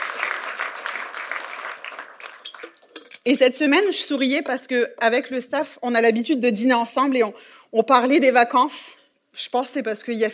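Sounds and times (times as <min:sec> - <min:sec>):
audience applauding: 0:00.0 - 0:02.8
speech: 0:03.2 - 0:10.3.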